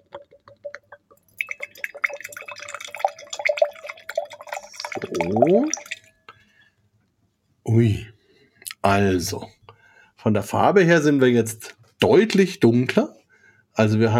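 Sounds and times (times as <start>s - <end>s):
liquid poured into a glass: 0.0s - 6.2s
speech: 5.3s - 5.8s, 8.9s - 9.6s, 10.2s - 13.2s, 13.8s - 14.1s.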